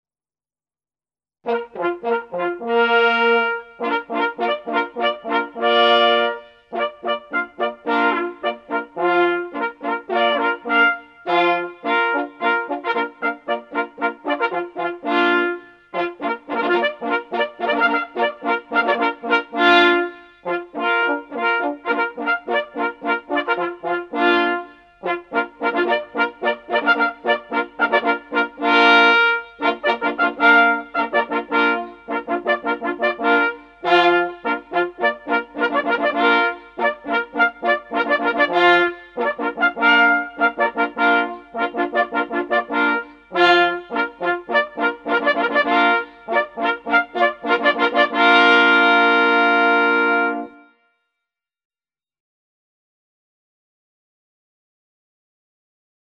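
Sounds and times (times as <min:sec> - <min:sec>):
Danish polka played in several parts: 0:01.4 - 0:50.7.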